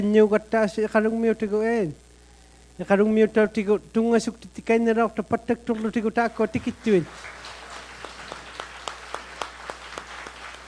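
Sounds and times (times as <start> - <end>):
speech: 0.0 - 2.0, 2.8 - 7.4
audience clapping: 6.3 - 10.6.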